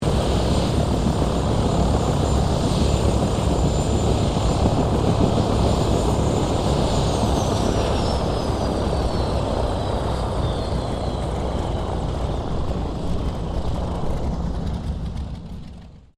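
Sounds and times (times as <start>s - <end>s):
UH1 Iroquois helicopter shutting down: 0.0s - 16.1s
UH1 Iroquois helicopter bell: 0.1s - 12.0s.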